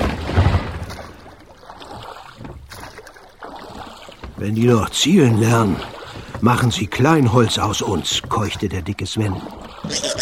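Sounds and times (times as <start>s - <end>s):
cannonballs splashing into sea behind rowboat: 0.0s - 1.8s
speech: 4.4s - 10.1s.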